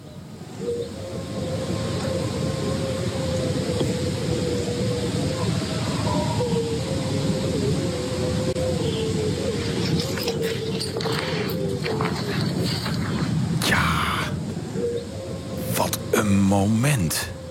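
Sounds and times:
wolves howling: 0.6 - 15.7
speech: 16.6 - 17.3.

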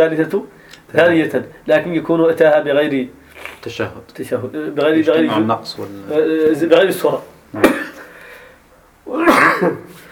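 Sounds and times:
speech: 0.0 - 7.9, 9.6 - 9.8
sneeze during a religious lesson: 9.1 - 10.0.

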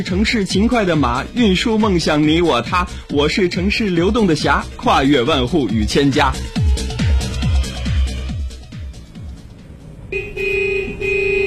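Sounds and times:
speech: 0.0 - 6.6
low rhythmic thumping: 0.1 - 10.1
car horn honking with a bright buzzing tone: 10.1 - 11.4.

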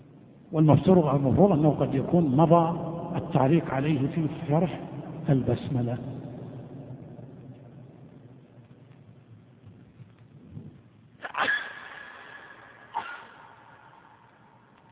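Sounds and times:
speech: 0.5 - 6.2
low rumble: 1.3 - 11.0
sneeze: 11.2 - 13.8.

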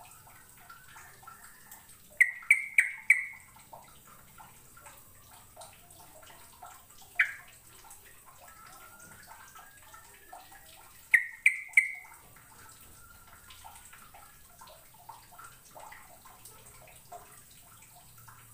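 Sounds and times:
bird chirps: 0.8 - 3.6, 7.1 - 7.5, 11.0 - 12.2.

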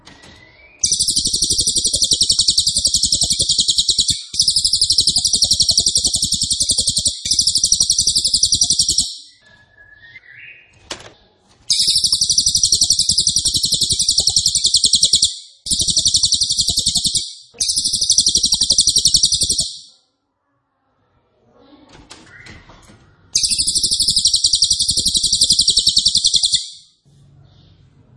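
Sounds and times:
song: 0.8 - 9.3, 11.7 - 19.9, 23.4 - 26.8.

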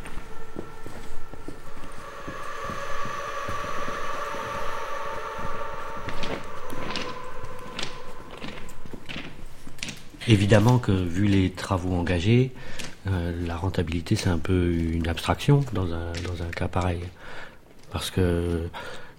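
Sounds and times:
train passing over a viaduct: 0.0 - 9.8
speech: 10.3 - 19.0.

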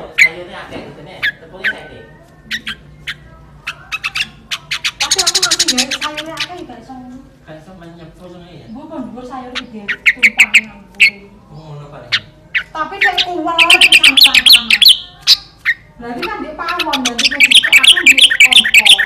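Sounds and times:
sooty-headed bulbul singing: 1.2 - 6.7, 8.7 - 19.0.

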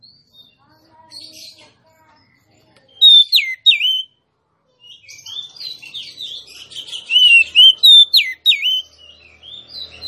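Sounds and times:
female Oriental magpie-robin singing rich whistled notes: 3.0 - 4.1, 7.1 - 8.9.

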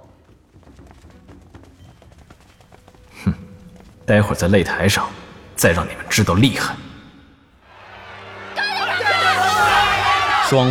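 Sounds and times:
speech: 4.1 - 6.8, 10.5 - 10.6
crowd cheering in an arena: 7.6 - 10.6.

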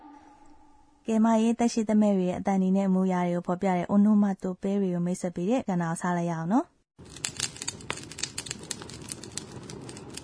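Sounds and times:
speech: 1.1 - 7.3
crackling fire like a burning bonfire: 7.0 - 10.2.

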